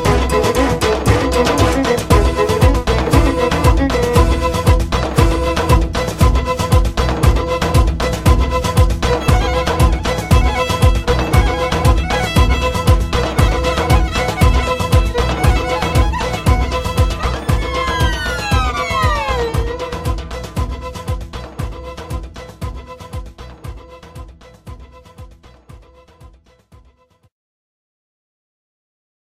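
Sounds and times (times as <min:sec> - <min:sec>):
birthday dance music: 0:00.0 - 0:23.2.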